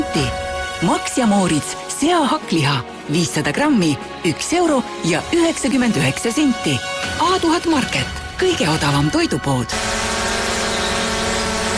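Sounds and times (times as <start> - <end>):
speech: 0.2 - 10.0
drone rotors buzzing while hovering: 9.7 - 11.7.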